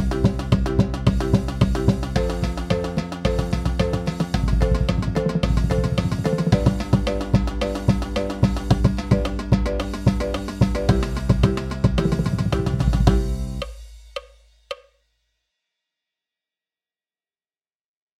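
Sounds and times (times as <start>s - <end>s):
count-off: 0.0s - 13.8s
marching percussion at 110 BPM: 0.0s - 14.4s.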